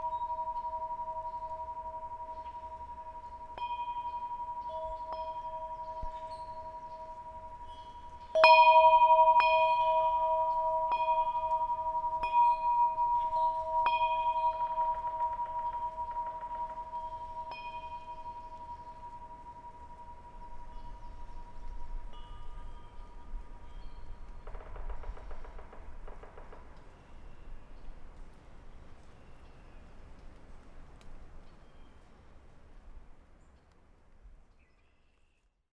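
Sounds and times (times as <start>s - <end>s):
wind chimes chiming: 0.0s - 24.4s.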